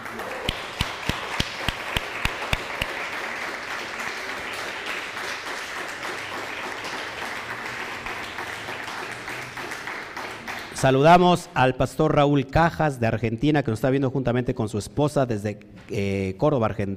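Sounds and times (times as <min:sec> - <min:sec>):
sharp evenly spaced claps: 0:00.0 - 0:10.9
audience applause: 0:00.0 - 0:11.1
speech: 0:10.8 - 0:16.9.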